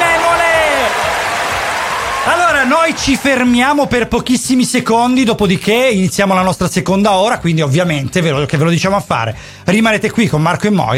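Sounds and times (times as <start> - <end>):
group clapping: 0.0 - 3.6
speech: 2.7 - 10.9.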